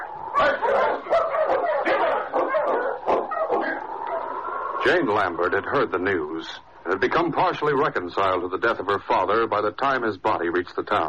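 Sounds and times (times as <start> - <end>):
sled dogs barking and yipping: 0.0 - 4.8
speech: 4.9 - 11.0.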